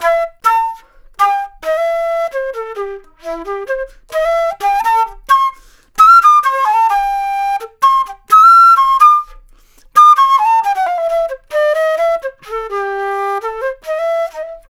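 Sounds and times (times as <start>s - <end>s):
jazz flute solo: 0.0s - 14.7s.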